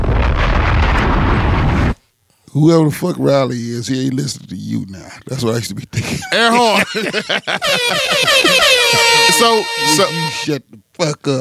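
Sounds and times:
bomb explosion sound effect: 0:00.0 - 0:02.0
speech: 0:02.6 - 0:11.3
laughter: 0:06.0 - 0:10.0.

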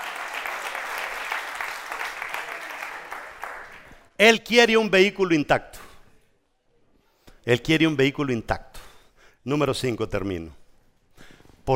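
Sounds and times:
audience clapping: 0:00.0 - 0:04.1
speech: 0:04.2 - 0:05.8, 0:07.4 - 0:08.7, 0:09.4 - 0:10.6.

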